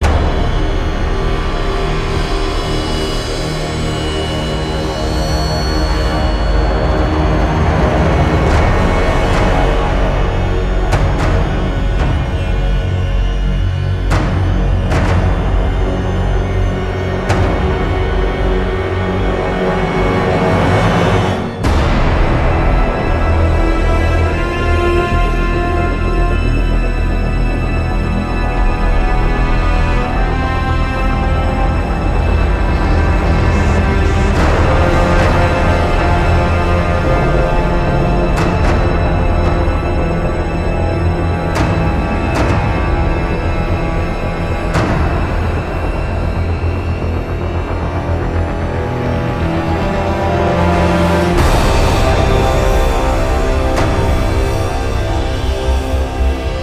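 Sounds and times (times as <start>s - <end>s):
tense music: 0.0s - 56.6s.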